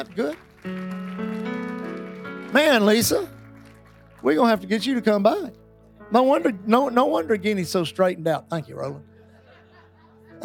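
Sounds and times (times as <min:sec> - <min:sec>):
speech: 0:00.0 - 0:01.0, 0:02.5 - 0:03.4, 0:04.2 - 0:09.1
audience applause: 0:00.0 - 0:04.7
laughter: 0:09.1 - 0:10.4.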